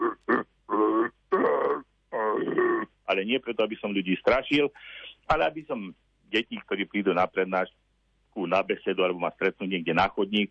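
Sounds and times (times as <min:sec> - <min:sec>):
man imitating deer or bear call: 0:00.0 - 0:03.1
speech: 0:03.1 - 0:07.8, 0:08.4 - 0:10.5.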